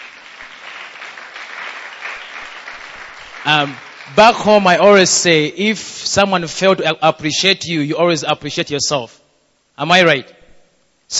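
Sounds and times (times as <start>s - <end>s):
audience clapping: 0.0s - 5.0s
speech: 3.4s - 9.2s, 9.8s - 10.4s.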